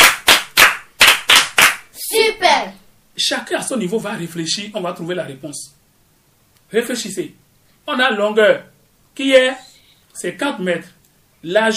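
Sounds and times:
classroom group clapping in unison for a pupil: 0.0 - 1.9
speech: 3.2 - 5.8, 6.7 - 11.7.

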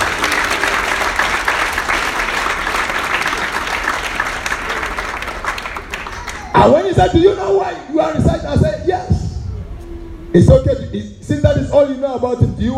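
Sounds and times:
audience applause: 0.0 - 6.6
speech: 6.6 - 8.8, 10.3 - 12.7.

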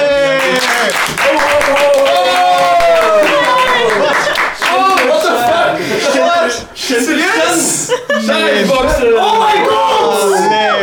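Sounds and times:
applause: 0.1 - 5.4
laughter: 1.6 - 10.5.

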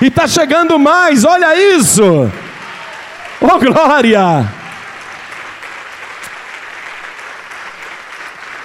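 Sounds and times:
speech: 0.0 - 2.4, 3.4 - 4.6
audience applauding: 2.3 - 8.6.

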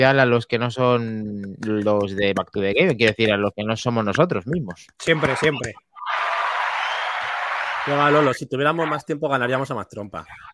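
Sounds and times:
speech: 0.0 - 6.3, 7.9 - 10.5
applause: 6.2 - 8.3.

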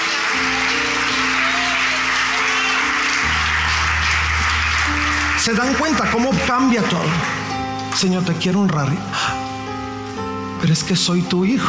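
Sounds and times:
audience applause: 0.0 - 8.2
speech: 5.4 - 7.3, 8.0 - 9.4, 10.6 - 11.6.

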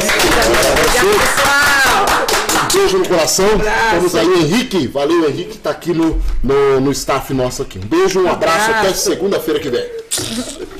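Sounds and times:
crowd applauding: 0.0 - 3.0
speech: 2.8 - 10.7.

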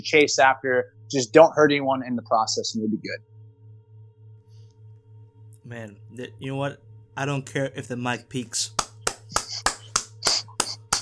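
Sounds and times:
speech: 0.0 - 3.4, 5.7 - 8.8
faint constant low hum: 0.0 - 11.0
slow deliberate hand claps: 8.8 - 11.0.

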